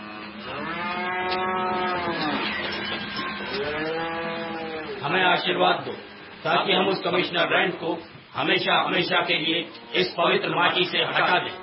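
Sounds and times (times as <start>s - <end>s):
buffalo lowing: 0.0s - 5.1s
speech: 5.1s - 11.6s.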